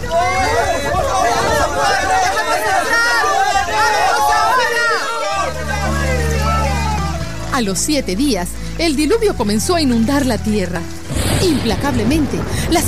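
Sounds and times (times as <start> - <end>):
crowd shouting: 0.0 - 7.5
speech: 7.6 - 12.8.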